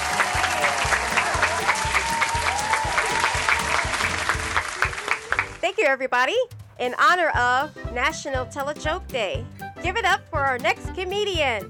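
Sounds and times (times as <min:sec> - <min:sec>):
comedy club audience applause: 0:00.0 - 0:05.6
speech: 0:05.8 - 0:11.6.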